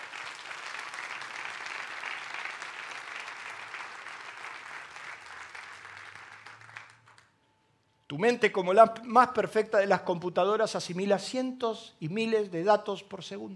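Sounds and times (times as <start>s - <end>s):
crowd applause: 0.0s - 7.3s
speech: 8.1s - 13.5s.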